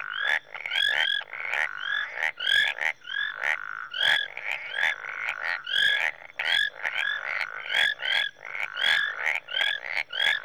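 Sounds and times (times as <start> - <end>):
marsh frogs and tree frogs calling in Rwanda: 0.0 - 10.4.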